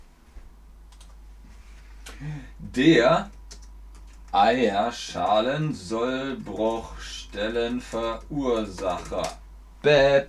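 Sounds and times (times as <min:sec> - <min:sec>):
low hum: 0:00.0 - 0:10.2
typing a German compound word on a computer keyboard: 0:00.9 - 0:01.2, 0:03.2 - 0:04.4, 0:06.4 - 0:09.4
speech: 0:02.2 - 0:03.4, 0:04.4 - 0:10.2.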